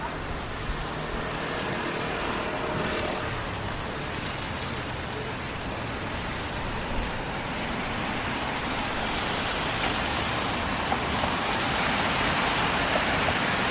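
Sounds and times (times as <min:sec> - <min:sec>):
passing traffic rumble: 0:00.0 - 0:13.7
rain downtown on a rainy night: 0:00.0 - 0:13.7.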